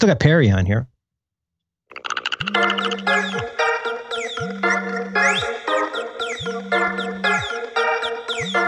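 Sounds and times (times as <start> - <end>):
speech: 0.0 - 0.9
phone ringtone: 2.0 - 8.6.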